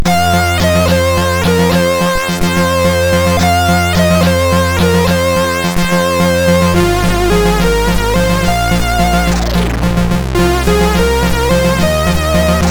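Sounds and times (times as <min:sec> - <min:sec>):
old music on MOS6581R2 sound chip: 0:00.0 - 0:12.6.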